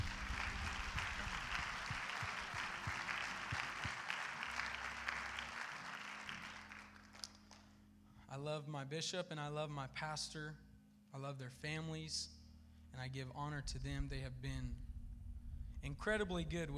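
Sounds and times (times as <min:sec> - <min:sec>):
audience hand clap: 0:00.0 - 0:07.7
speech: 0:08.4 - 0:14.8, 0:15.8 - 0:16.7.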